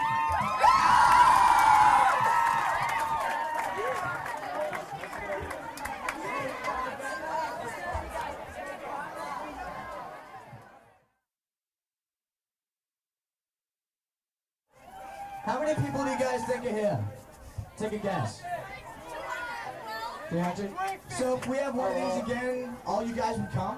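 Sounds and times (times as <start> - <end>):
crowd whooping and shouting: 0.0 - 5.8, 14.8 - 16.8
crowd clapping: 0.0 - 8.4
crowd chatter: 0.0 - 11.2, 14.8 - 23.7
speech: 15.7 - 17.1, 17.8 - 18.5, 20.3 - 23.7.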